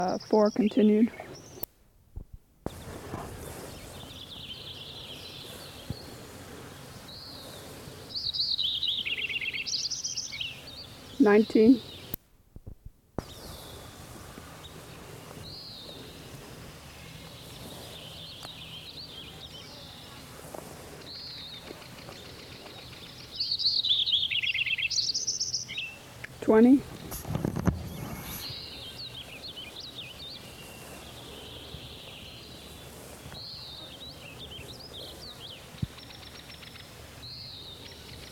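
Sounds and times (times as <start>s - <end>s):
speech: 0.0s - 1.2s, 11.2s - 11.9s
bird song: 0.0s - 1.7s, 2.7s - 12.2s, 13.2s - 38.3s.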